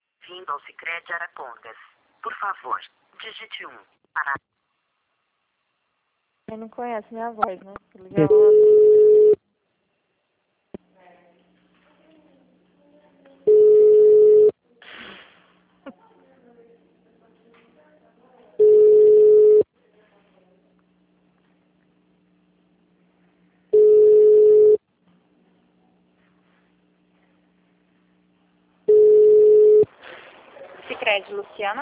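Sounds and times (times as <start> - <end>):
speech: 0.3 - 4.5, 6.5 - 9.0, 31.3 - 31.8
telephone tone beeps on a bank line after a dropped call: 8.3 - 9.4, 13.5 - 14.5, 18.6 - 19.6, 23.8 - 24.8, 28.9 - 29.9.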